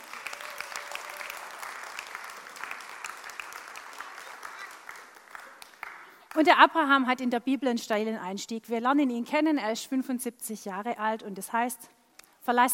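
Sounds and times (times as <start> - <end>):
audience applause: 0.0 - 6.4
speech: 6.4 - 12.7.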